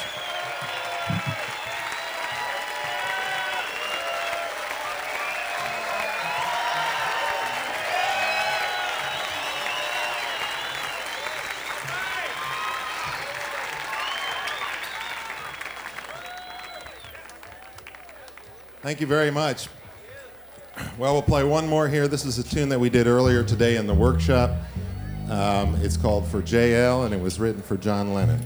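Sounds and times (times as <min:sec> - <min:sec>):
audience applause for three musicians at a live show: 0:00.0 - 0:18.5
speech: 0:18.9 - 0:19.8, 0:21.0 - 0:24.7, 0:25.4 - 0:28.4.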